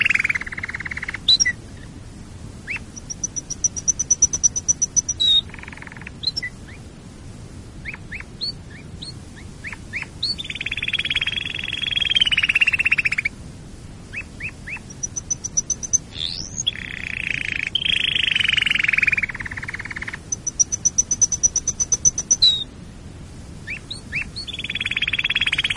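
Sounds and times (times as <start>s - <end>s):
canary singing: 0.0s - 1.6s, 2.7s - 6.8s, 7.8s - 13.3s, 14.1s - 22.7s, 23.6s - 25.7s.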